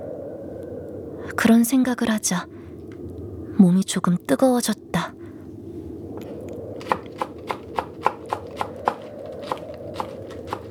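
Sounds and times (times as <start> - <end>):
low hum: 0.0 - 10.6
speech: 1.4 - 2.6, 3.6 - 5.2
knife chopping green onion and radish on a cutting board: 6.8 - 10.6.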